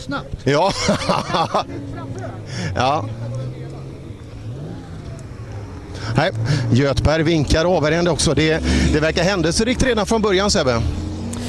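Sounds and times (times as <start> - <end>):
speech: 0.0 - 3.4, 6.1 - 11.0
laughter: 0.6 - 3.7
car engine revving as the car accelerates: 0.7 - 11.4.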